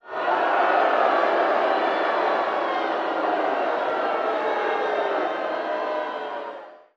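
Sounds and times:
large crowd booing: 0.0s - 6.9s.

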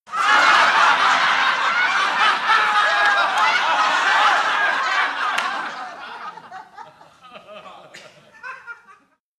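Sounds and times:
medium crowd bursting into laughter: 0.1s - 9.2s.

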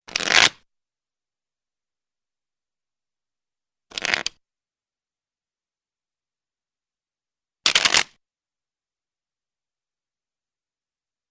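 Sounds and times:
playing cards shuffling: 0.1s - 0.6s, 3.9s - 4.4s, 7.7s - 8.1s.

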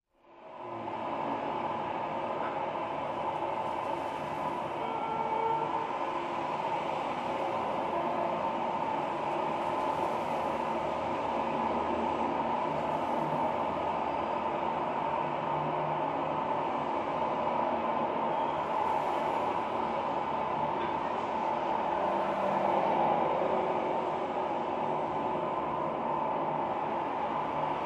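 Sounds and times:
city traffic noise: 0.2s - 27.8s.

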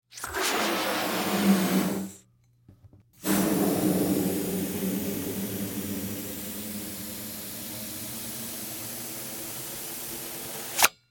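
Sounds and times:
medium rubber balloon: 0.0s - 2.2s, 3.2s - 8.4s.

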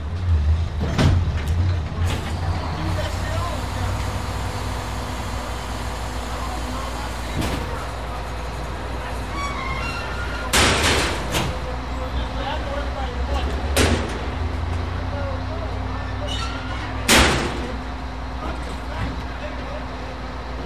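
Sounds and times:
garbage truck: 0.0s - 20.6s.

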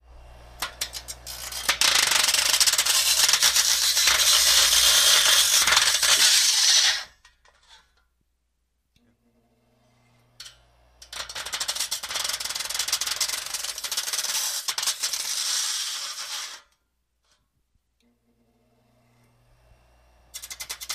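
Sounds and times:
electric grinder grinding: 0.1s - 7.1s, 10.4s - 16.6s, 20.3s - 20.9s.

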